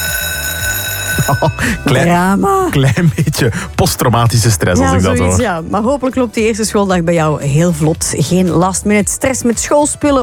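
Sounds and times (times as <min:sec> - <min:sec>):
school bell ringing: 0:00.0 - 0:02.2
speech: 0:01.3 - 0:10.2.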